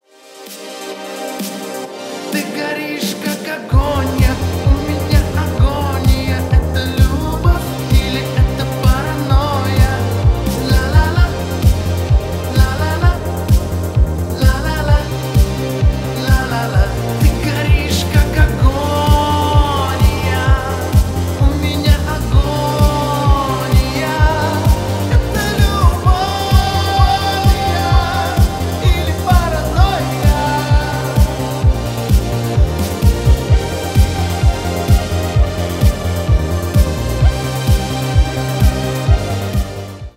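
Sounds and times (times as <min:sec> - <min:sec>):
retro cover song: 0:00.0 - 0:40.1.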